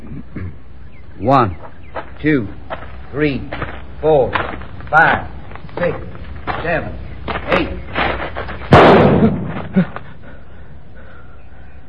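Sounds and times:
speech: 1.2 - 7.8, 9.2 - 10.0
pistol shot fired in a duel: 8.7 - 9.6.

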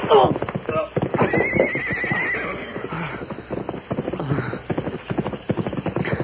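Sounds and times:
horse whinnying with a high shrill neigh: 0.0 - 3.2
horse hooves galloping in a rapid clip-clop: 0.0 - 6.2.

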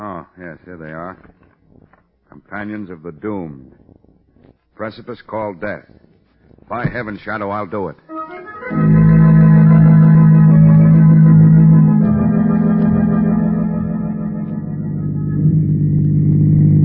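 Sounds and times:
speech: 0.0 - 1.4, 2.3 - 4.0, 4.8 - 6.0, 6.7 - 9.0
car engine drone while driving along an empty road: 8.7 - 16.8.

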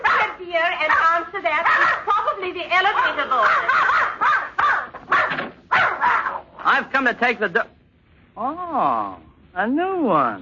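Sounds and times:
dog barking: 0.0 - 2.2, 3.0 - 6.5
speech: 0.5 - 4.3, 6.7 - 7.8, 8.4 - 10.3.

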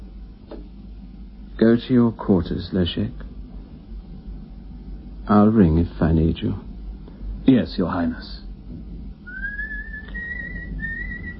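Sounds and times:
speech: 1.6 - 3.3, 5.3 - 6.7, 7.4 - 8.9
coachman whistling a tune: 9.2 - 11.3.

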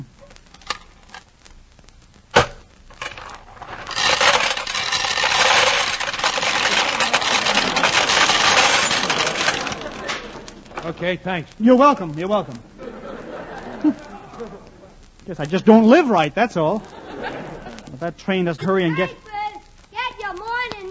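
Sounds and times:
peanut vending machine mechanism rattling: 3.0 - 10.9
coins dropping into peanut vending machine: 3.9 - 10.4
laughter: 6.8 - 8.4, 9.0 - 11.0, 12.2 - 15.0, 16.6 - 18.2
speech: 10.9 - 12.8, 15.3 - 17.3, 18.0 - 19.2.

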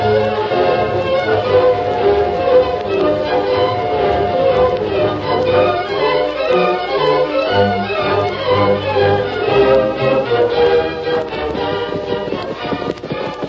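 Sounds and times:
horses' hooves as riders ride to a small general store: 0.0 - 13.4
low tonal background: 0.0 - 13.4.

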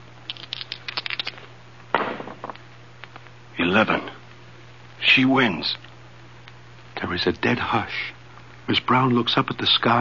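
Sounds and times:
dice rolling: 0.3 - 1.4
speech: 3.7 - 4.1, 5.2 - 5.9, 7.1 - 10.0.

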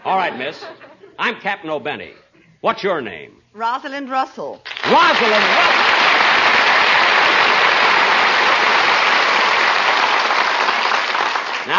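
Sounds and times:
speech: 0.1 - 6.4
applause: 4.6 - 11.7.

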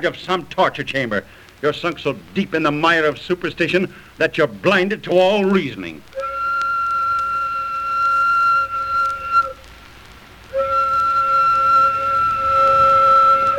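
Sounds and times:
speech: 0.0 - 6.1
sawmill steam whistle blasts: 6.1 - 9.7, 10.5 - 13.5.

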